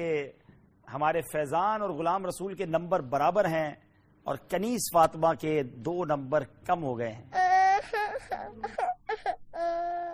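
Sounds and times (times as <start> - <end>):
speech: 0.0 - 8.8
young girl crying on a children's show: 7.4 - 10.1.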